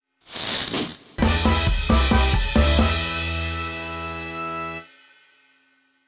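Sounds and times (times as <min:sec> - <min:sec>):
symbol jackpot win sound effect: 0:01.2 - 0:04.8.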